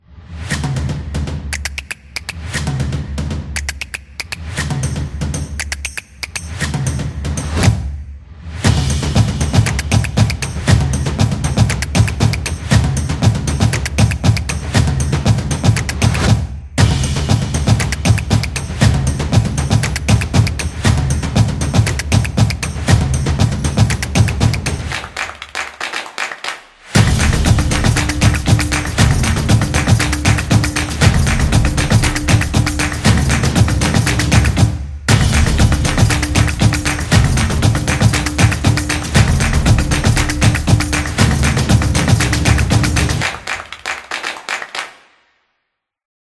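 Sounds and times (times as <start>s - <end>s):
percussionist playing: 0.4s - 45.0s.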